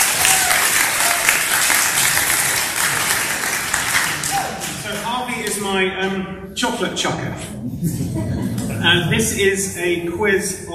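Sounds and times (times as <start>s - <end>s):
audience applause: 0.0s - 4.8s
speech: 5.7s - 10.7s
laughter: 7.1s - 9.9s.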